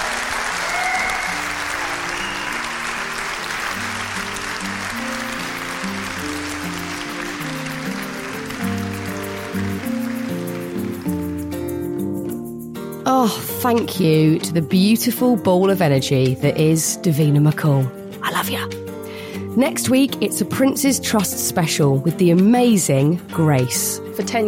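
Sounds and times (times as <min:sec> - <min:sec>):
live audience applause: 0:00.0 - 0:11.4
music: 0:00.0 - 0:24.4
speech: 0:13.2 - 0:18.8, 0:19.6 - 0:24.4.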